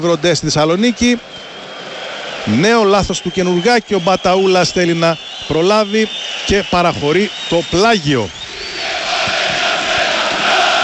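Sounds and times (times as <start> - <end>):
speech: 0.0 - 1.5, 2.4 - 8.4
football fans shouting: 0.0 - 10.8.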